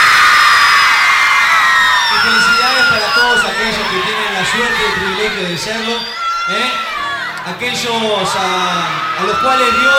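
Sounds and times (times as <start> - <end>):
audience shouting loudly: 0.0 - 9.9
speech: 3.3 - 9.9.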